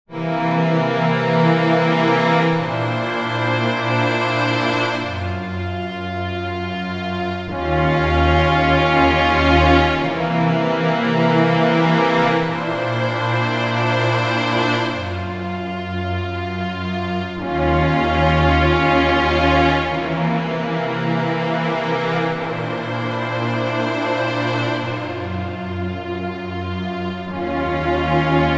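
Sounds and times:
Sequential Prophet X warm arco strings: 0:00.1 - 0:28.5.

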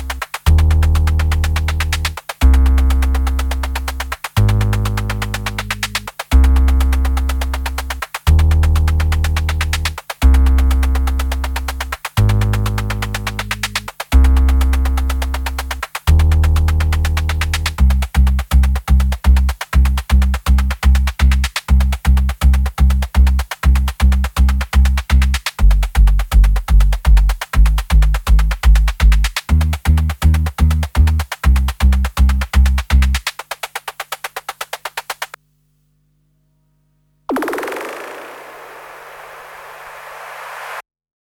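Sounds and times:
sub bass: 0:00.0 - 0:32.4
noise percussion: 0:00.0 - 0:35.4, 0:37.3 - 0:40.8.

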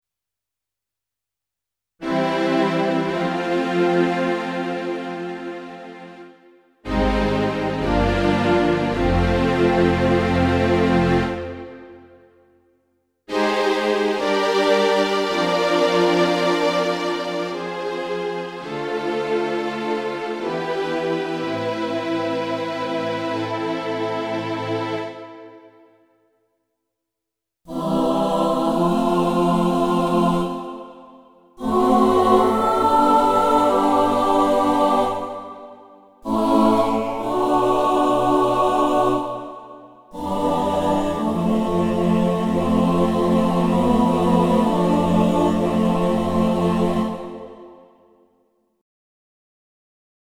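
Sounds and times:
CLP470 digital piano strings and choir: 0:02.0 - 0:12.3, 0:13.3 - 0:25.9, 0:27.7 - 0:48.2.

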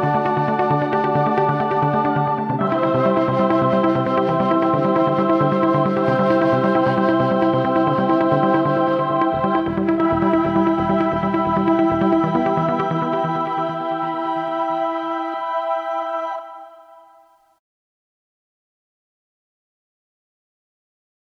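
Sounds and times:
Mellotron boys choir and flute: 0:00.0 - 0:17.5.

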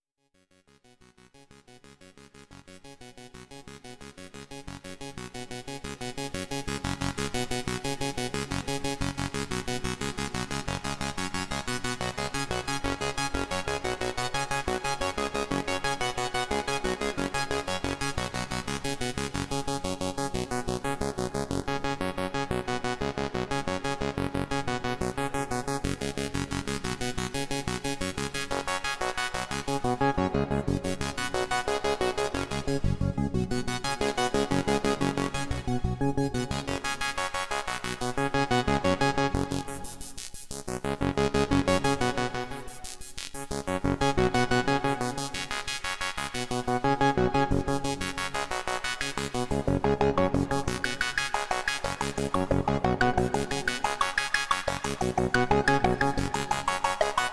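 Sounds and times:
Doepfer A-121 and A-138j modular synthesizer: 0:03.2 - 0:57.3.

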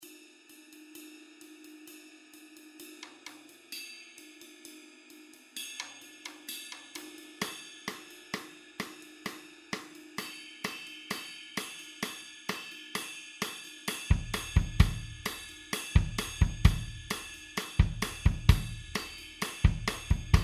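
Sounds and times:
American rock song on Fairfax drum kit: 0:10.7 - 0:20.4.

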